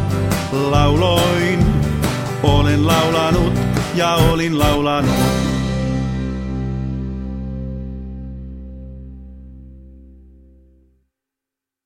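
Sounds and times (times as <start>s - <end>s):
drums: 0.0s - 7.4s.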